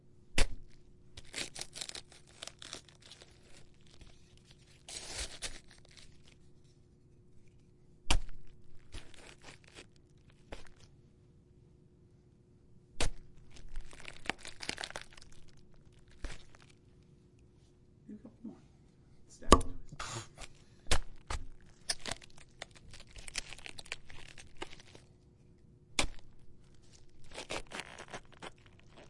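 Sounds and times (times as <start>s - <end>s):
stabbing a cabbage: 0.3s - 6.5s, 8.0s - 10.9s, 12.9s - 16.8s, 19.5s - 25.1s, 25.9s - 29.0s.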